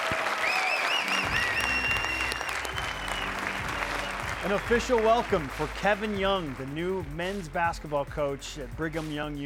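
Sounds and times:
audience applause: 0.0s - 6.8s
whistling: 0.4s - 4.4s
speech: 4.4s - 9.4s.

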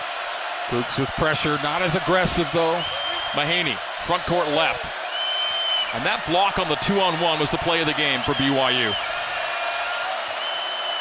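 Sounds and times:
basketball crowd cheering loudly: 0.0s - 10.9s
speech: 0.7s - 5.0s, 5.9s - 9.2s
shrill whistle-like tones: 2.4s - 3.6s, 5.0s - 6.0s, 8.1s - 10.9s.

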